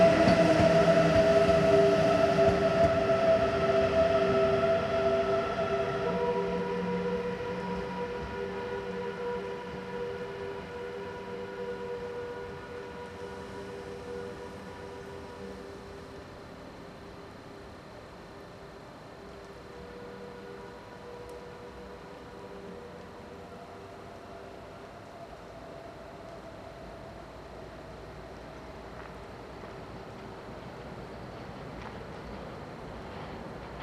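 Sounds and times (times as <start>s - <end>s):
BLS RE 465 locomotive-hauled train horn-like tones: 0.0s - 16.2s, 19.2s - 24.8s
BLS RE 465 locomotive-hauled train rumble: 0.0s - 33.8s.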